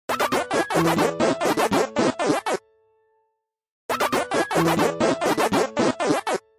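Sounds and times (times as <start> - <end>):
Pacman waka waka sound as a Nokia ringtone: 0.1 - 2.6, 3.9 - 6.4.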